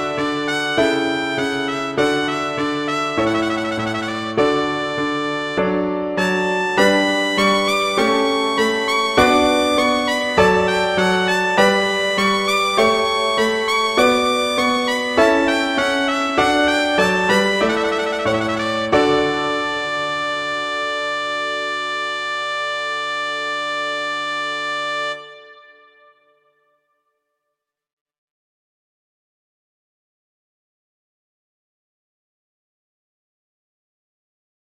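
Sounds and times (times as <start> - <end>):
slow classical piece: 0.0 - 26.6.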